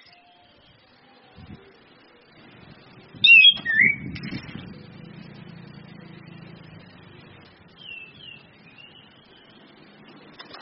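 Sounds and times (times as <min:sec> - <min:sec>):
Orange-headed thrush giving varied whistled phrases: 0:03.2 - 0:04.2.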